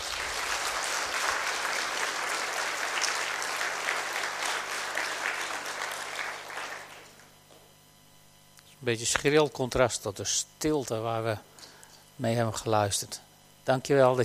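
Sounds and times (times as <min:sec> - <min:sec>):
audience applause: 0:00.0 - 0:07.3
speech: 0:08.8 - 0:11.6, 0:12.2 - 0:14.2.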